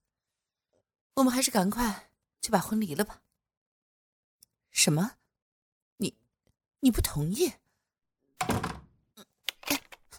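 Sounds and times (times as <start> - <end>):
speech: 1.2 - 3.3, 4.8 - 5.2, 6.0 - 6.2, 6.8 - 7.6
door being shut: 8.4 - 8.9.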